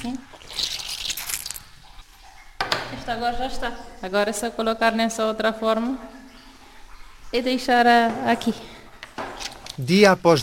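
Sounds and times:
speech: 0:00.0 - 0:00.4, 0:03.1 - 0:06.2, 0:07.3 - 0:08.8, 0:09.8 - 0:10.4
leftover water pressed out of cheese curd: 0:00.0 - 0:09.9.

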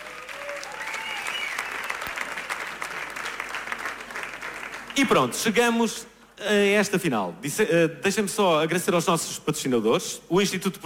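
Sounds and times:
faint whoops: 0:00.0 - 0:02.0
audience applause: 0:00.0 - 0:05.3
speech: 0:05.0 - 0:10.8.

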